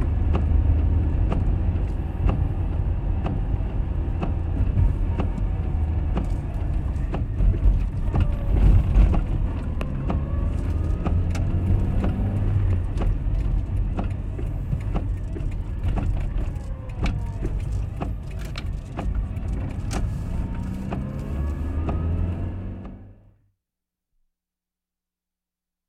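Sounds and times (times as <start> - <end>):
car driving: 0.0 - 23.3
car windscreen wipers running: 0.0 - 23.3.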